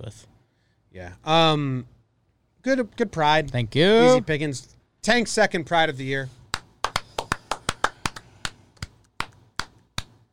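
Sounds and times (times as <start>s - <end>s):
speech: 0.1s - 0.3s, 0.9s - 2.0s, 2.6s - 6.4s
single person clapping hands: 6.5s - 10.3s.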